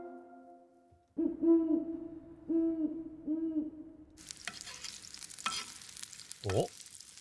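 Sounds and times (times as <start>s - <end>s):
low mellow hoots: 1.2s - 4.2s
bacon frying in a pan: 4.2s - 7.1s.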